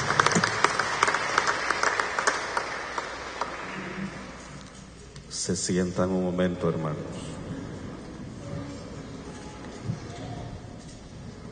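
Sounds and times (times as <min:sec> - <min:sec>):
crowd applause: 0:00.0 - 0:04.6
speech: 0:05.5 - 0:07.3.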